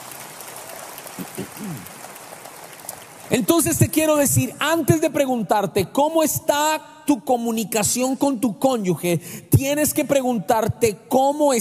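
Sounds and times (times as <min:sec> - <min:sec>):
audience applause: 0:00.0 - 0:03.6
speech: 0:01.2 - 0:02.0, 0:03.3 - 0:11.5.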